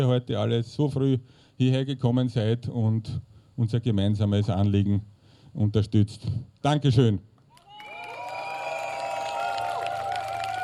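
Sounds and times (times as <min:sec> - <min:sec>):
speech: 0:00.0 - 0:07.3
cheering: 0:07.5 - 0:10.6
audience applause: 0:07.6 - 0:10.6.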